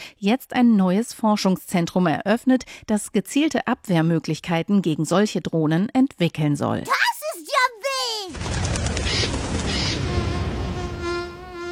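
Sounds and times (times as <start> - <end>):
speech: 0.2 - 8.6
mosquito buzzing: 9.7 - 11.7.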